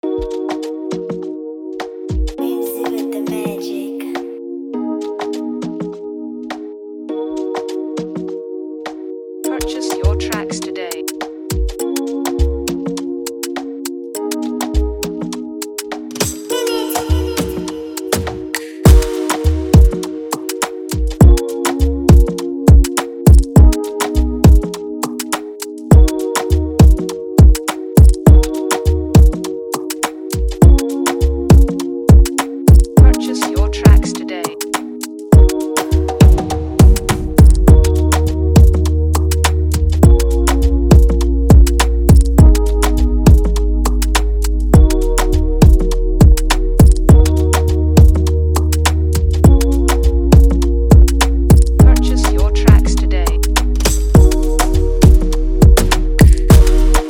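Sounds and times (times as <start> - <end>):
afrobeat instrumental music: 0.0 - 57.0.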